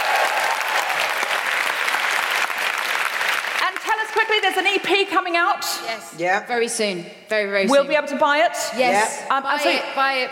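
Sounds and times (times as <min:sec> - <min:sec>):
audience applause: 0:00.0 - 0:04.4
speech: 0:04.4 - 0:10.3.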